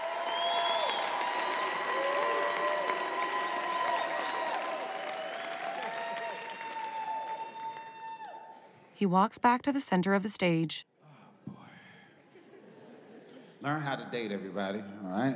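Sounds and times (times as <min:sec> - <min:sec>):
audience applause: 0:00.0 - 0:08.5
speech: 0:09.0 - 0:10.9, 0:13.6 - 0:15.3.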